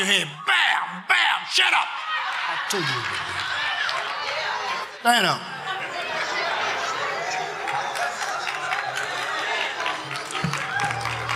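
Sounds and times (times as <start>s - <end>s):
speech: 0.0s - 3.6s, 4.2s - 5.6s
few people clapping: 2.0s - 5.0s, 7.3s - 11.3s
laughter: 2.1s - 11.3s.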